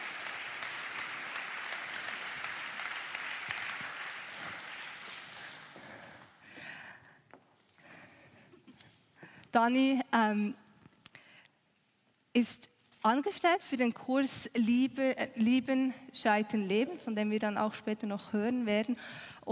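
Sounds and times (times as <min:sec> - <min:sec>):
audience applause: 0:00.0 - 0:06.4
speech: 0:09.5 - 0:10.6, 0:12.4 - 0:19.4.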